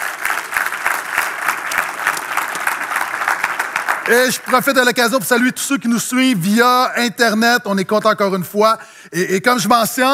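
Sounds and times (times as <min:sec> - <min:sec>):
audience applause: 0:00.0 - 0:05.0
speech: 0:04.1 - 0:10.1.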